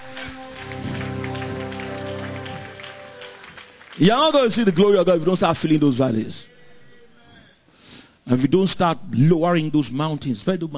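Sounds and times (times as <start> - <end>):
sustained low musical tone: 0.0 - 4.0
audience clapping: 0.0 - 5.5
speech: 4.0 - 6.5, 8.3 - 10.7.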